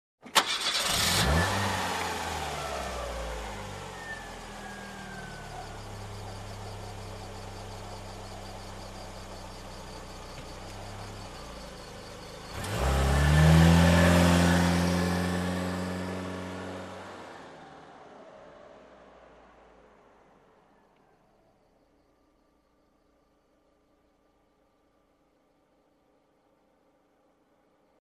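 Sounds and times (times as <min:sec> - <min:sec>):
car engine ignition: 0:00.2 - 0:21.1.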